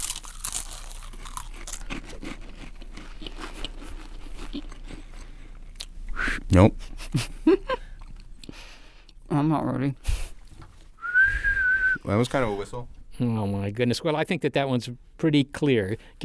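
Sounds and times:
saltine crackers crunching while being eaten: 0.0 - 6.0
speech: 6.5 - 7.8, 9.4 - 10.1, 12.0 - 16.2.

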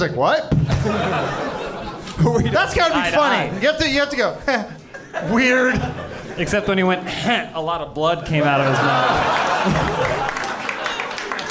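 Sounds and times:
speech: 0.0 - 1.5, 2.2 - 10.2
laughter: 0.6 - 7.1, 8.3 - 11.5
audience clapping: 8.7 - 11.5.

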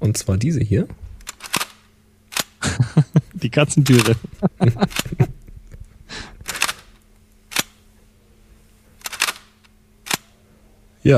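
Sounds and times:
faint hum: 0.0 - 11.1
speech: 0.1 - 1.0, 3.0 - 5.3
Sinar large-format camera shutter clicks: 1.2 - 2.6, 3.8 - 4.3, 6.4 - 7.8, 9.0 - 10.3
laughter: 2.6 - 5.5.

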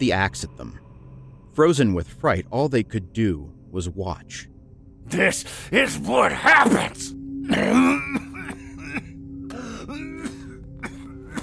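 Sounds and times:
speech: 0.0 - 0.8, 1.6 - 8.2
rasping coughs and throat-clearing: 7.4 - 11.4
throaty growl: 7.5 - 10.2.

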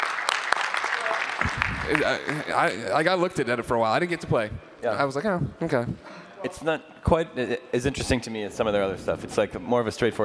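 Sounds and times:
audience applause: 0.0 - 3.0
speech: 1.9 - 10.2.

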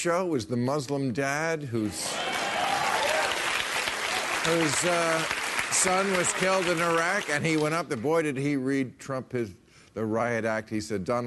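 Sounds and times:
speech: 0.0 - 2.4, 4.4 - 11.2
audience applauding: 2.0 - 8.0.

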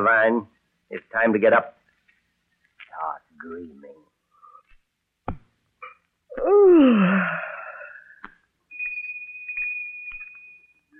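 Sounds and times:
speech: 0.0 - 1.8, 3.0 - 4.0, 6.4 - 7.5
bell ringing: 8.7 - 10.9.

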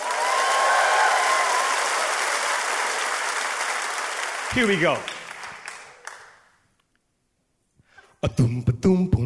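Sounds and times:
audience applause: 0.0 - 6.5
speech: 4.5 - 5.2, 8.2 - 9.1.

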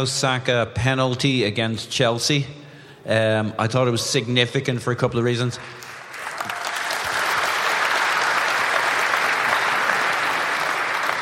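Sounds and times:
speech: 0.0 - 5.9
audience clapping: 5.8 - 11.2.

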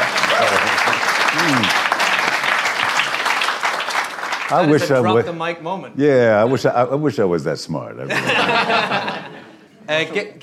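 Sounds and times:
audience applause at a live Q&A show in London: 0.0 - 5.2
speech: 4.5 - 9.2, 9.9 - 10.4
laughter: 8.1 - 9.7.

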